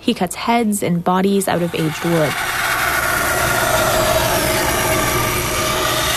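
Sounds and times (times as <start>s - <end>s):
speech: 0.1s - 2.6s
rotating belt sander running on wood: 1.5s - 6.1s.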